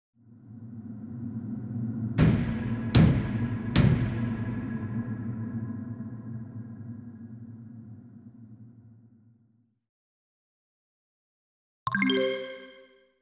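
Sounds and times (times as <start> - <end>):
ghostly knocking: 1.7 - 7.8.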